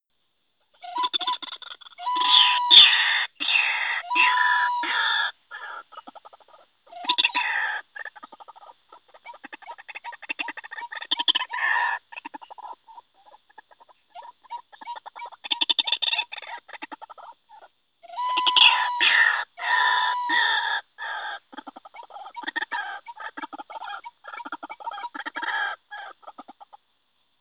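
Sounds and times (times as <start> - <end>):
white-breasted waterhen calling: 0.8 - 26.8.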